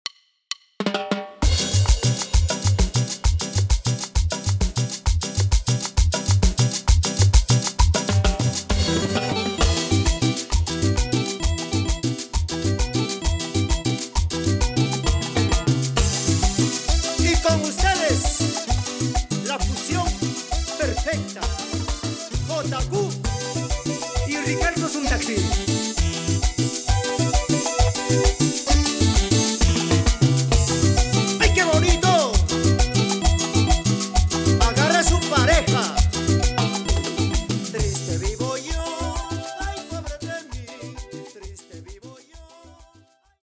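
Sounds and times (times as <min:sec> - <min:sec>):
percussion intro at 132 BPM: 0:00.0 - 0:43.2.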